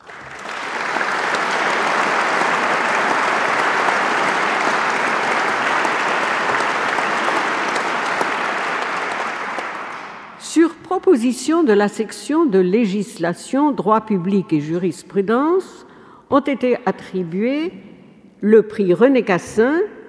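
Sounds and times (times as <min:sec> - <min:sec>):
audience applause: 0:00.0 - 0:10.4
speech: 0:11.0 - 0:20.0.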